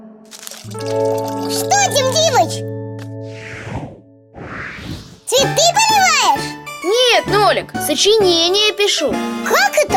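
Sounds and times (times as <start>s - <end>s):
paper being crumpled: 0.3s - 1.8s
speech: 0.6s - 2.8s, 5.4s - 9.9s.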